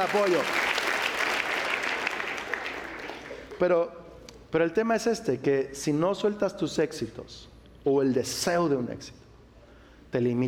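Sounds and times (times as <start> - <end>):
speech: 0.0 - 0.7, 3.6 - 9.2, 10.1 - 10.4
audience applause: 0.0 - 3.5.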